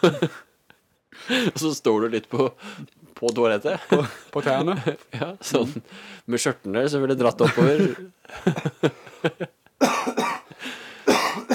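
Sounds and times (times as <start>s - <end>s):
speech: 0.0s - 0.4s, 1.2s - 9.9s
laughter: 0.0s - 0.5s, 3.8s - 5.9s, 7.4s - 9.6s
coughing fit: 9.8s - 11.5s.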